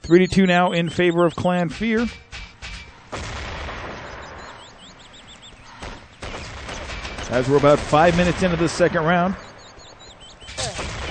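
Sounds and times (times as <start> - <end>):
speech: 0.1 - 2.3, 7.3 - 9.4
Spaz 12 shotgun blasts in a clan video game match: 1.8 - 4.8, 5.8 - 9.5, 10.4 - 11.0.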